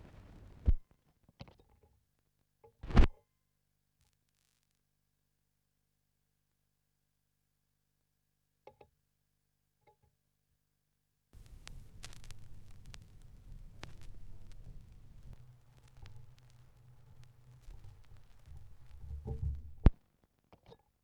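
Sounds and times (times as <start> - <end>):
vinyl record noise: 0.0 - 0.8, 2.8 - 3.1, 11.4 - 20.0.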